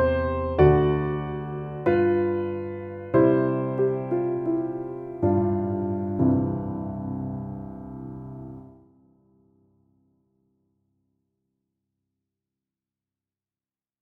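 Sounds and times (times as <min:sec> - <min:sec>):
piano: 0:00.0 - 0:10.1.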